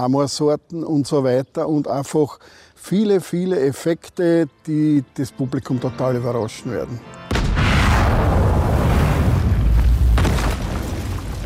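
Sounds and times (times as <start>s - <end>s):
speech: 0.0s - 7.2s
debris crackling: 7.3s - 11.4s
stage cannon shot and explosion: 7.3s - 11.4s.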